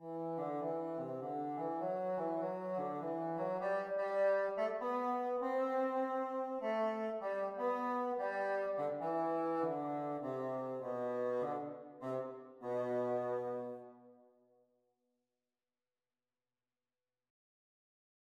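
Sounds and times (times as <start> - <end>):
bassoon duet practice: 0.0 - 14.0.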